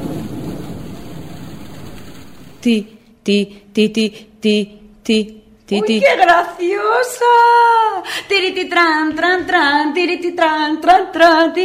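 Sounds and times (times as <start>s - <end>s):
rain falling: 0.0s - 2.6s
low rumble: 0.0s - 2.8s
speech: 2.6s - 11.6s.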